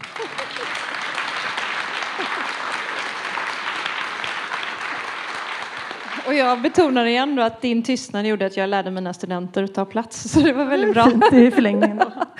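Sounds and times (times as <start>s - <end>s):
laughter: 0.0s - 3.8s, 10.4s - 12.3s
audience applause: 0.0s - 7.1s
speech: 6.3s - 12.3s.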